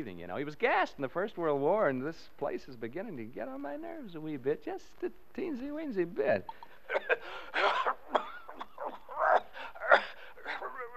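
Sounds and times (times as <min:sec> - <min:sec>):
speech: 0:00.0 - 0:07.8
man coughing: 0:06.9 - 0:10.9.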